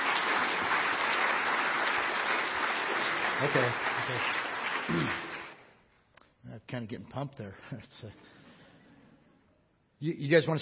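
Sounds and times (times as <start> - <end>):
audience applause: 0.0 - 5.7
speech: 3.4 - 5.2, 6.5 - 8.4, 10.0 - 10.6.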